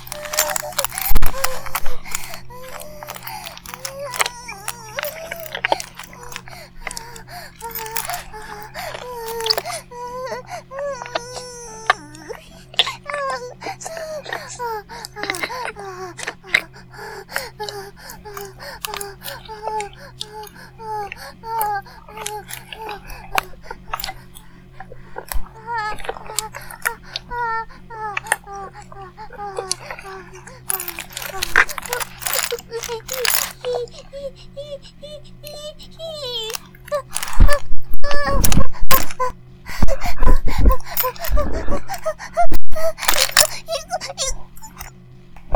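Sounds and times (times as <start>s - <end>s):
vibrator buzzing: 0.0s - 45.5s.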